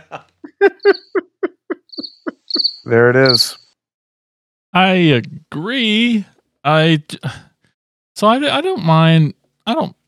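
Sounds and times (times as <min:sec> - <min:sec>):
laughter: 0:00.0 - 0:02.6
cricket chirping sound effect: 0:00.8 - 0:01.2, 0:01.9 - 0:03.7
speech: 0:02.8 - 0:03.6, 0:04.7 - 0:07.5, 0:08.2 - 0:10.0.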